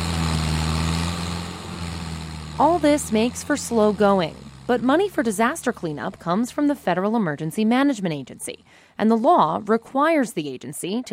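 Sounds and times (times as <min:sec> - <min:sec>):
tree service stump grinder grinding tree roots in Savannah: 0:00.0 - 0:08.8
speech: 0:02.6 - 0:11.1.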